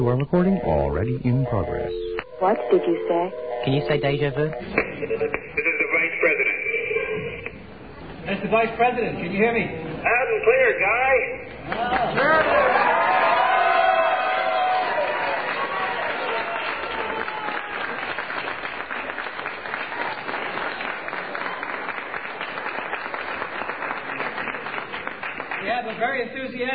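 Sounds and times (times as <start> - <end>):
speech: 0.0 - 6.4, 8.2 - 13.1
enthusiastic crowd cheering: 11.6 - 26.2.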